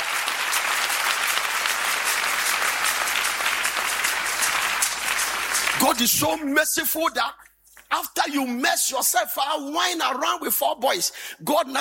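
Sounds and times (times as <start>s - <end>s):
audience applause: 0.0s - 6.3s
speech: 5.9s - 11.8s.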